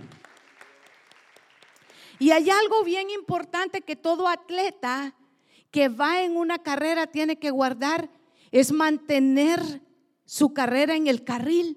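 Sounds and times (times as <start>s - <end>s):
audience clapping: 0.0s - 2.8s
speech: 2.2s - 11.7s.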